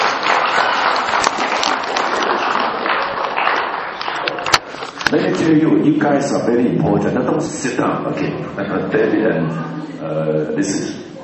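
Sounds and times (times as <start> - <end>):
audience applause: 0.0 - 5.0
speech: 5.1 - 11.0.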